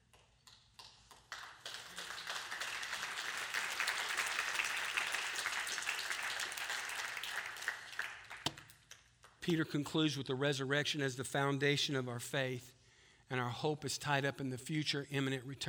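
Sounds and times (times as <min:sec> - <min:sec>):
audience applause: 0:01.3 - 0:08.5
speech: 0:09.5 - 0:15.6.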